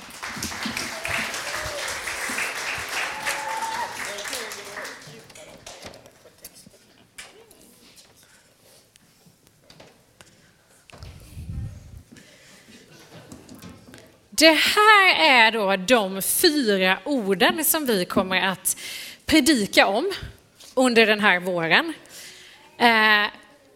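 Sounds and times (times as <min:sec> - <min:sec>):
audience applause: 0:00.0 - 0:06.3
speech: 0:14.4 - 0:22.0, 0:22.8 - 0:23.4.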